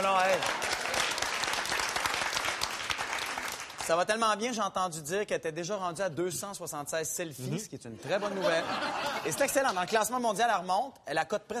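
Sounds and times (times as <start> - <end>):
applause: 0.0 - 4.1
speech: 3.9 - 11.5
laughter: 8.0 - 10.0.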